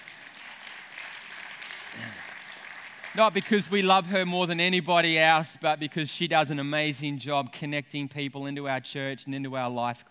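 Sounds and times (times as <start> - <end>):
crowd applauding: 0.0 - 4.1
speech: 3.2 - 10.0.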